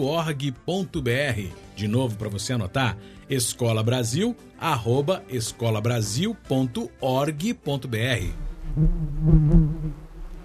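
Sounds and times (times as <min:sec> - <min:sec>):
speech: 0:00.0 - 0:10.0
bee buzzing: 0:08.3 - 0:10.4.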